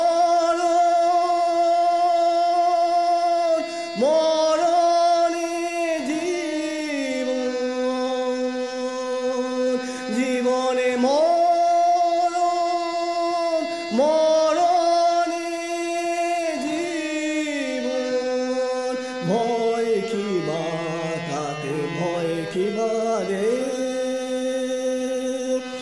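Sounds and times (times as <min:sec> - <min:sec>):
harmonium: 0:00.0 - 0:25.8
person singing: 0:00.0 - 0:25.8.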